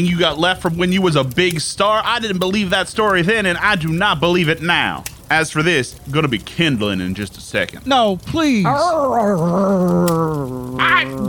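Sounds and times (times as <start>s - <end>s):
speech: 0.0s - 11.2s
dog growling: 8.6s - 11.2s.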